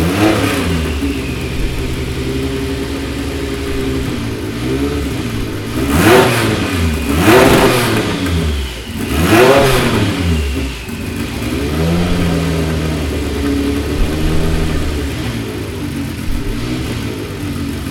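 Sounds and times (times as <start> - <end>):
Porsche 956 Coupe racing car engine: 0.0 - 17.9.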